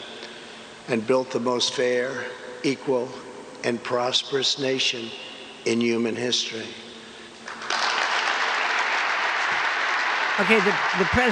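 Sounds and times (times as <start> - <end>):
speech: 0.9 - 6.8, 10.4 - 11.3
applause after a speech statement: 7.5 - 11.3.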